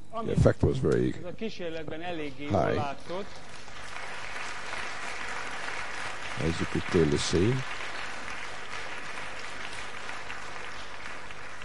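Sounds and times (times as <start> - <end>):
speech: 0.2 - 3.7, 6.4 - 7.8
audience applause after a physics demonstration: 2.8 - 11.6.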